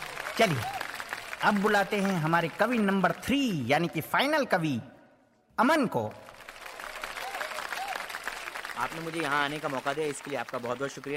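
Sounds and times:
audience applause: 0.0s - 3.2s, 6.2s - 11.1s
speech: 0.4s - 0.8s, 1.4s - 4.9s, 5.6s - 6.2s, 8.8s - 11.1s.

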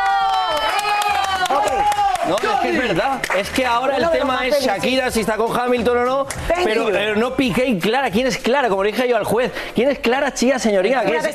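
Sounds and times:
applause: 0.0s - 4.2s
speech: 2.3s - 11.3s.

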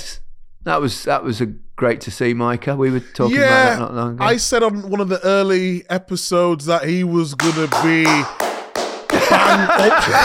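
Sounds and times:
speech: 0.6s - 8.4s, 9.4s - 10.2s
sarcastic hand clapping: 7.4s - 10.2s
snickering laughter: 9.1s - 10.2s.

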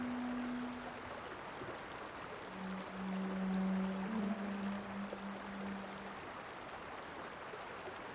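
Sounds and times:
bass flute notes: 0.0s - 1.2s, 2.4s - 6.3s
river murmuring in Lengarica Canyon: 0.0s - 8.0s.

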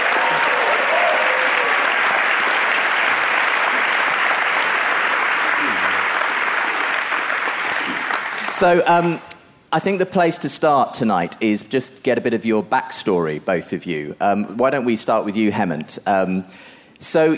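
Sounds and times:
audience applause greeting two guests at a live evening event: 0.0s - 8.8s
speech: 8.6s - 17.3s.

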